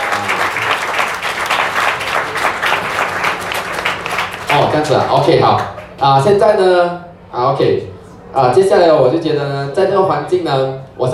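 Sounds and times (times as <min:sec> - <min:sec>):
audience applause: 0:00.0 - 0:06.1
speech: 0:04.6 - 0:11.1.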